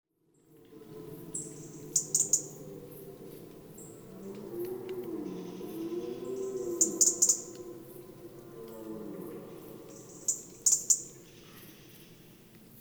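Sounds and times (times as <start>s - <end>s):
gentle low wavering background: 0.7s - 12.5s
European robin tick notes: 1.5s - 5.1s, 6.8s - 8.8s, 9.9s - 11.3s.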